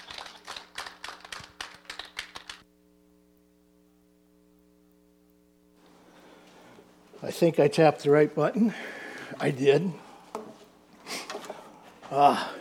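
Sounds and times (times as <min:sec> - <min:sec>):
audience applause: 0:00.0 - 0:02.6
speech: 0:07.2 - 0:10.0, 0:12.1 - 0:12.5.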